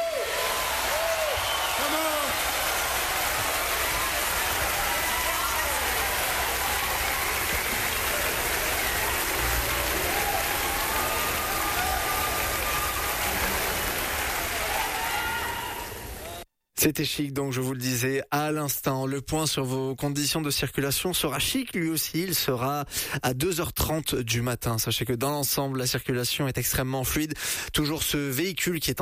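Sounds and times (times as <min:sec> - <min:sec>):
faint cheers: 0:00.0 - 0:16.4
large concert crowd clapping: 0:00.0 - 0:16.4
speech: 0:16.8 - 0:29.0.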